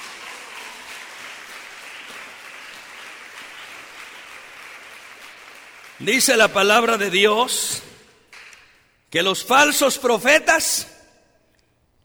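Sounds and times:
audience applause: 0.0 - 7.1
speech: 6.0 - 7.9, 9.1 - 11.0.

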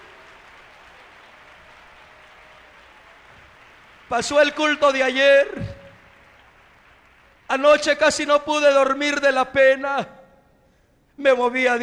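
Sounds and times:
audience applause: 0.0 - 8.7
speech: 4.1 - 5.8, 7.6 - 10.2, 11.2 - 11.8.

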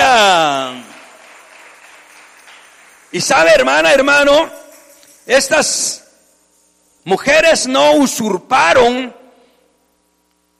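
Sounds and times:
church congregation applauding: 0.0 - 5.9
speech: 3.1 - 4.6, 5.3 - 6.0, 7.0 - 9.2.

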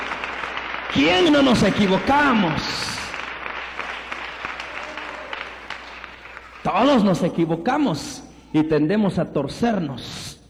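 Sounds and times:
audience applause: 0.0 - 7.3
speech: 0.9 - 2.9, 6.6 - 10.2.

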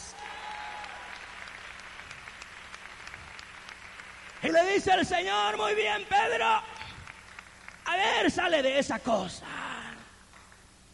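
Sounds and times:
audience applause: 0.0 - 8.3
speech: 4.4 - 6.7, 7.9 - 9.5.

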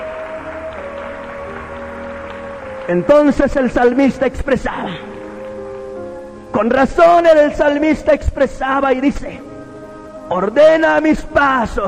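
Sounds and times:
audience applause: 0.0 - 4.0
speech: 2.9 - 5.1, 6.6 - 9.5, 10.3 - 11.8.

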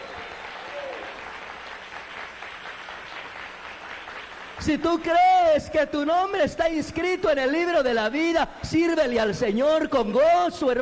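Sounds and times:
audience applause: 0.0 - 5.5
speech: 4.6 - 10.8.

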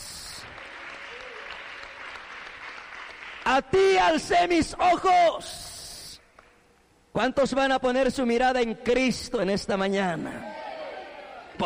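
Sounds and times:
audience applause: 0.4 - 3.5
speech: 3.5 - 5.6, 7.2 - 10.6.

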